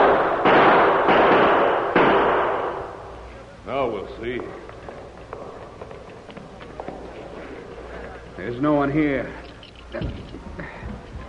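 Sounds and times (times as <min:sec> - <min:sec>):
gunshots fired inside a cavern: 0:00.0 - 0:03.0
speech: 0:08.4 - 0:10.2.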